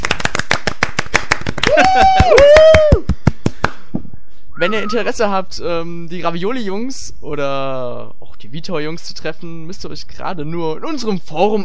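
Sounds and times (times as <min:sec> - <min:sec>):
rhythmic hand clapping from a small group: 0:00.0 - 0:03.9
drawn-out voiced cheer: 0:01.6 - 0:03.1
speech: 0:04.6 - 0:11.6.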